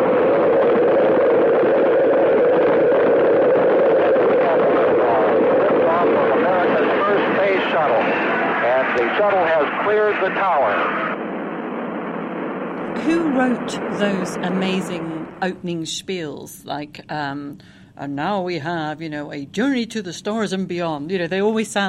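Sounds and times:
rocket main engines igniting at launch: 0:00.0 - 0:15.8
speech: 0:13.4 - 0:21.8.

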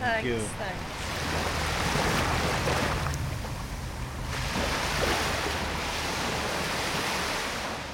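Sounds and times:
soft lapping of the Mediterranean Sea on the Côte d'Azur: 0:00.0 - 0:07.9
speech: 0:00.1 - 0:03.0.

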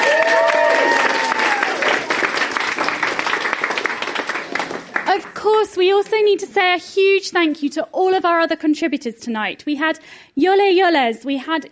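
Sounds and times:
crowd applause: 0:00.0 - 0:05.4
speech: 0:05.8 - 0:11.7.

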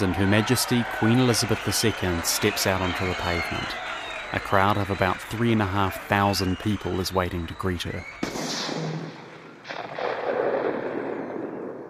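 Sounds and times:
speech: 0:00.0 - 0:08.9
rifle shot: 0:08.2 - 0:11.8.

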